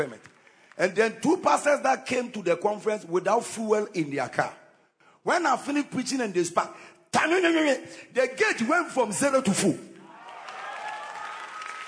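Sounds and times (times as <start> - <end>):
speech: 0.0 - 0.2, 0.8 - 4.6, 5.2 - 9.9
audience clapping: 10.0 - 11.8.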